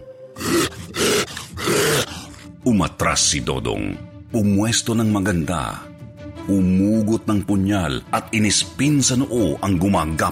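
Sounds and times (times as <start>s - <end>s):
deafening monster roar: 0.4s - 2.5s
speech: 2.6s - 10.3s.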